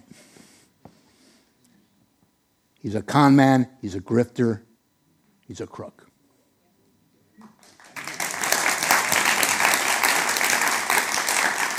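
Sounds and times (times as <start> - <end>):
speech: 2.8 - 4.7, 5.5 - 6.1
audience applause: 7.4 - 11.7.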